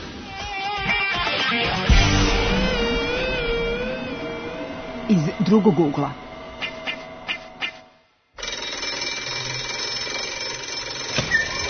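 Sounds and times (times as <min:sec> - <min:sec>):
music: 0:00.0 - 0:05.1
speech: 0:05.1 - 0:06.2
last school bell ringing: 0:08.4 - 0:11.6.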